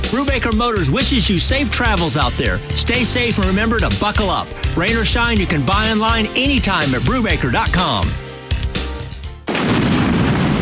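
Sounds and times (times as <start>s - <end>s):
speech: 0.1s - 8.2s
thunder: 9.5s - 10.5s.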